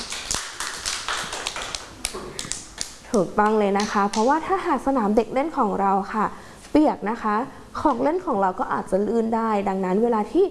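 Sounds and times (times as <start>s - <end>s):
children clapping hands: 0.0s - 4.3s
speech: 3.1s - 10.4s.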